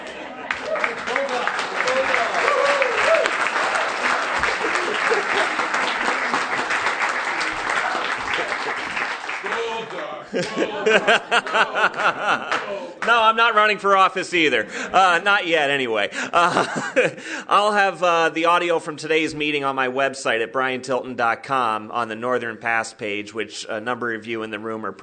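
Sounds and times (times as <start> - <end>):
applause: 0.0 - 13.1
laughter: 0.0 - 17.5
speech: 10.4 - 25.0.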